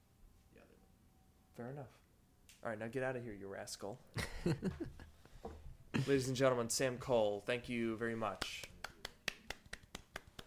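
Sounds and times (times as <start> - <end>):
speech: 1.6 - 5.1, 6.0 - 8.6
small round of applause: 8.4 - 10.4.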